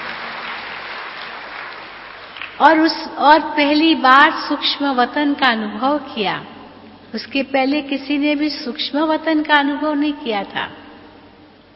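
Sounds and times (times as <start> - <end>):
audience applause: 0.0 - 2.6
speech: 2.6 - 6.5, 7.1 - 10.8.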